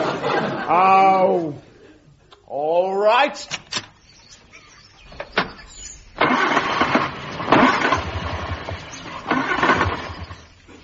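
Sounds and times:
laughter: 0.0 - 2.2
speech: 0.7 - 1.7, 2.5 - 3.6
car engine cranking and failing to start: 5.2 - 10.5.

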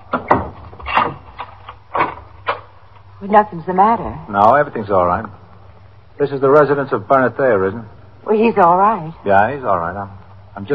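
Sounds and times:
door opening: 0.0 - 2.7
speech: 3.2 - 5.4, 6.2 - 10.7.

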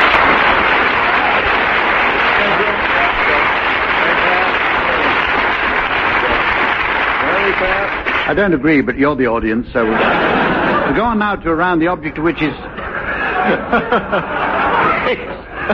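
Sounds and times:
laughter: 0.0 - 6.6, 9.8 - 11.6, 12.2 - 15.7
studio audience applause: 0.0 - 8.8, 13.2 - 15.7
speech: 8.3 - 12.8, 13.4 - 14.4, 15.0 - 15.7.

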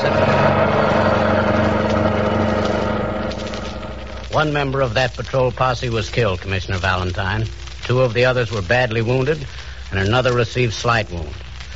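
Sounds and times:
car engine running: 0.0 - 4.7
speech: 4.4 - 11.4.

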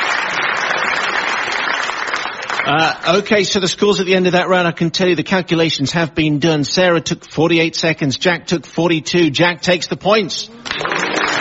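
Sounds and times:
audience applause for two contestants at a quiz-style event: 0.0 - 2.9, 10.6 - 11.4
speech: 2.7 - 11.0.

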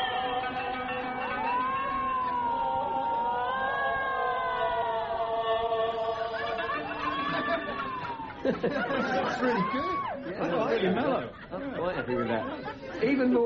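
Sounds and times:
cat wailing amplified like through a loudspeaker: 0.2 - 8.5
laughter: 0.4 - 13.4
speech: 8.5 - 13.4.

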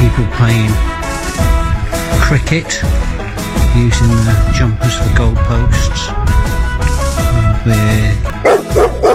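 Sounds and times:
speech: 0.2 - 1.5, 2.1 - 7.0, 7.6 - 8.9
dog barking: 8.4 - 9.1.

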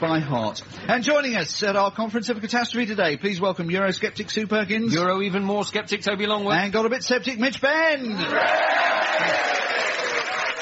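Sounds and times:
speech: 0.0 - 9.9
live comedy panel show audience cheering and applauding: 8.2 - 10.6.

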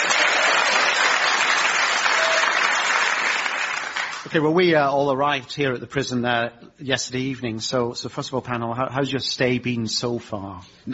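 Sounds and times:
crowd clapping: 0.0 - 4.4
speech: 4.3 - 10.9.

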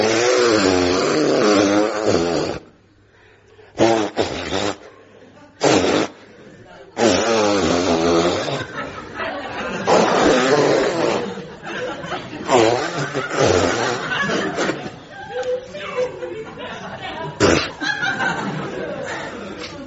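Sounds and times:
nose blowing: 0.0 - 2.8, 3.6 - 5.0, 5.6 - 6.3, 7.0 - 9.0, 9.7 - 11.6, 12.4 - 14.9, 17.4 - 17.9
laughter: 8.2 - 19.8.

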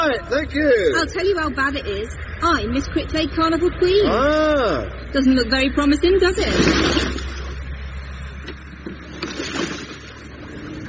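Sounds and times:
speech: 0.2 - 7.4
lawn mowers running: 5.2 - 10.8.

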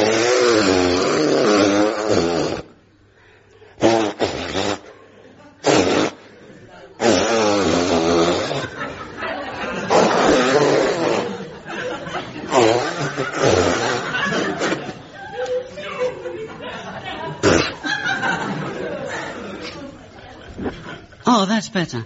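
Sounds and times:
person blowing nose: 0.0 - 2.8, 3.8 - 5.0, 5.6 - 6.3, 7.0 - 8.8, 9.9 - 11.5, 12.5 - 14.8, 17.4 - 17.8
laughter: 4.7 - 7.0, 8.2 - 21.2
speech: 21.7 - 22.0.

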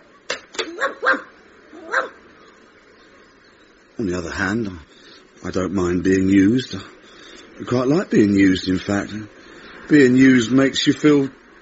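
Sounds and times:
stray dog barking: 0.6 - 2.2
speech: 4.0 - 7.0, 7.6 - 11.4.

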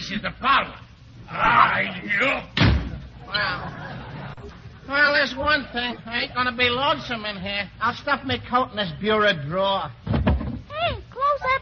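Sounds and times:
speech: 0.1 - 2.7, 3.3 - 4.1, 4.9 - 10.2, 10.8 - 11.6
door slamming shut: 2.6 - 3.0
laughter: 2.9 - 6.0.

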